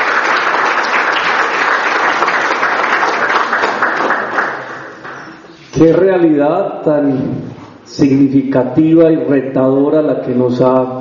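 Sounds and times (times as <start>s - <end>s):
crowd applauding: 0.0s - 5.5s
speech: 5.8s - 11.0s.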